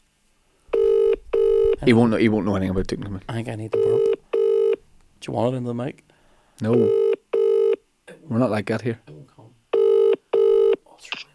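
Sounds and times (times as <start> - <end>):
telephone ringing tone while placing a call: 0.7 - 1.8, 3.7 - 4.8, 6.8 - 7.8, 9.8 - 10.8
speech: 1.8 - 4.2, 5.2 - 7.0, 8.3 - 9.2.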